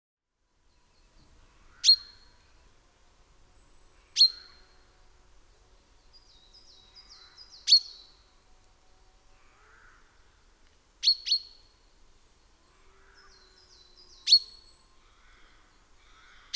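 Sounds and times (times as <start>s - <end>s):
common chaffinch metallic calls: 1.8s - 2.3s, 3.9s - 4.6s, 14.1s - 14.7s, 16.4s - 16.5s.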